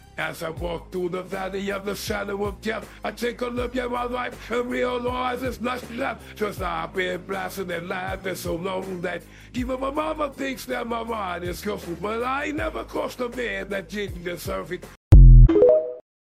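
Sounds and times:
rap music: 0.0 - 15.0.

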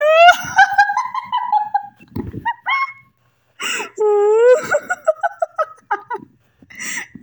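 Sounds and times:
person laughing: 0.0 - 3.0, 3.7 - 6.3.

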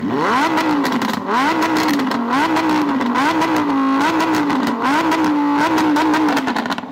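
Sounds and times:
car engine rumbling: 0.0 - 6.9.

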